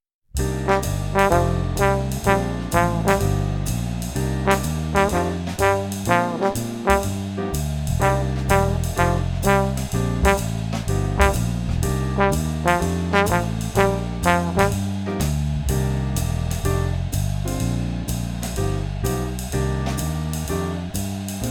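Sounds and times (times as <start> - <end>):
swing phrasing exercise: 0.4 - 21.4.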